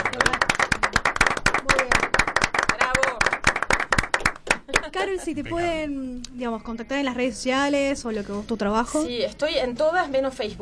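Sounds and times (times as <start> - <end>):
applause from a small group: 0.0 - 5.0
speech: 5.0 - 10.6.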